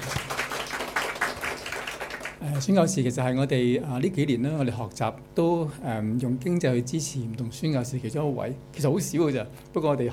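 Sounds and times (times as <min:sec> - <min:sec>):
church congregation applauding to welcome a guest speaker: 0:00.0 - 0:02.4
speech: 0:02.5 - 0:10.1.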